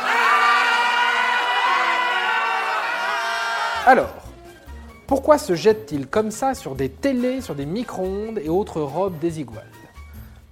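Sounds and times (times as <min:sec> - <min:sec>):
excited crowd of shoppers shouting and whooping: 0:00.0 - 0:03.9
speech: 0:03.9 - 0:04.2, 0:05.1 - 0:09.8.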